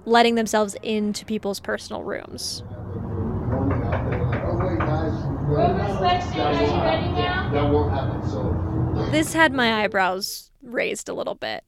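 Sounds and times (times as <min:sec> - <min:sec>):
speech: 0:00.0 - 0:02.8, 0:05.5 - 0:11.6
low rumble: 0:01.6 - 0:10.1
voices talking: 0:02.4 - 0:10.4
knocking on a motel room door: 0:03.4 - 0:05.3.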